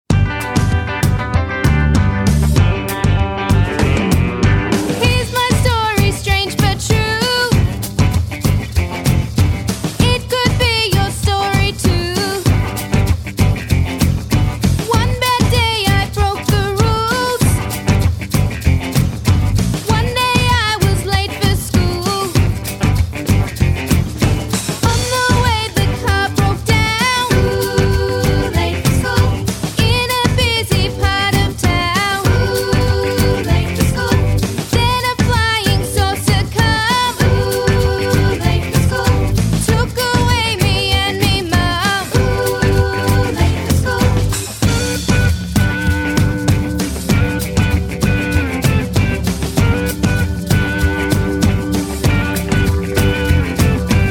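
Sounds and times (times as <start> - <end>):
blues music: 0.0 - 54.1.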